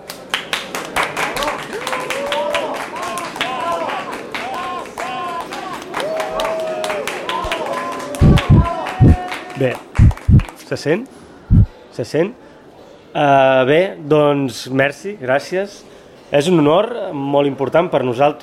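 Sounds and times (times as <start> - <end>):
audience applause: 0.1 - 10.4
crowd cheering: 1.0 - 10.4
loud thumps: 8.2 - 9.2, 10.0 - 10.4, 11.5 - 11.7
speech: 9.6 - 9.8, 10.7 - 11.2, 12.0 - 12.4, 13.2 - 18.4.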